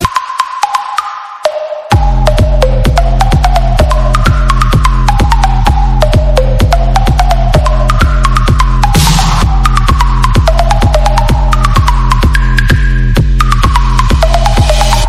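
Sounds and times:
electro music: 0:00.0 - 0:15.0.

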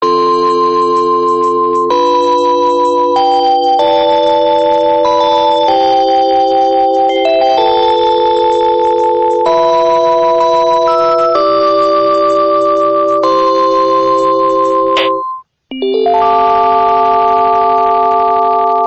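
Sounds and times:
Panasonic phone ringing: 0:00.0 - 0:18.8.

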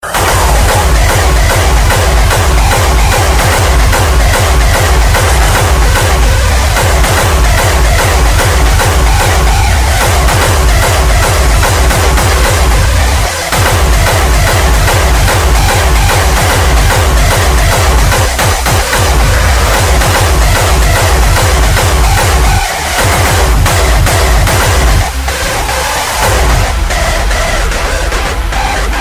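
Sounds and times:
hardstyle music: 0:00.0 - 0:29.0.

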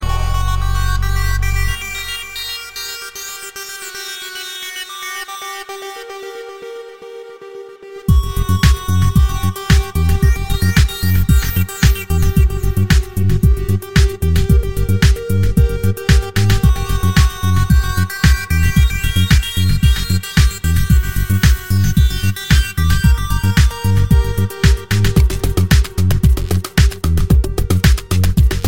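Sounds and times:
electronic music: 0:00.0 - 0:28.6.

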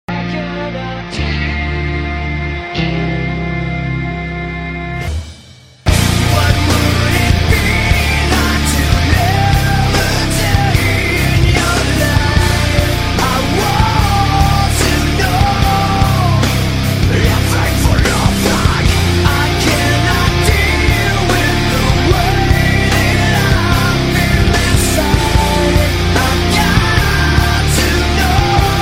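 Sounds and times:
metal rock tone: 0:00.1 - 0:28.8.

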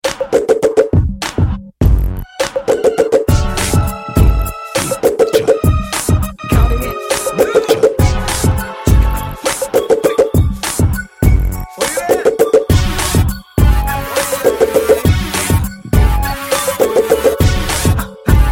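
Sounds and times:
music beat: 0:00.0 - 0:18.5.

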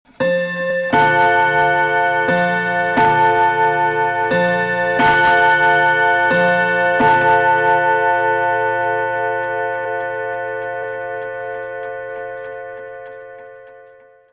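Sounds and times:
old clock: 0:00.1 - 0:14.3.

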